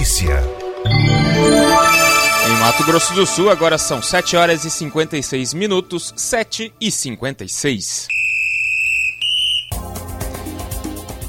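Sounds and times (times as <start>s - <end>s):
speech: 0.0s - 1.5s, 2.5s - 8.2s
rhythmic music: 0.9s - 6.2s
shrill whistle blasts: 8.2s - 9.7s.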